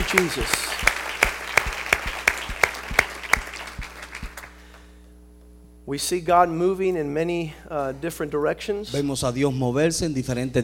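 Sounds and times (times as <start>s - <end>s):
applause: 0.0s - 4.8s
speech: 0.1s - 0.9s, 5.9s - 10.6s.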